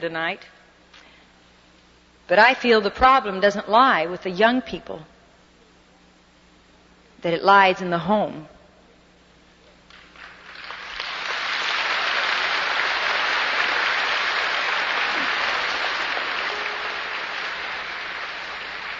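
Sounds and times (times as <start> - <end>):
speech: 0.0 - 0.6, 2.3 - 5.1, 7.2 - 8.5
crowd applause: 10.2 - 18.9.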